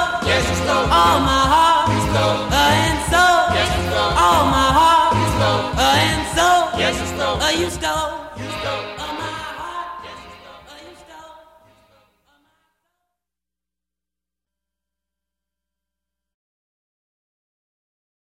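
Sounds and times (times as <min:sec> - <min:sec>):
doo-wop singing: 0:00.0 - 0:12.6.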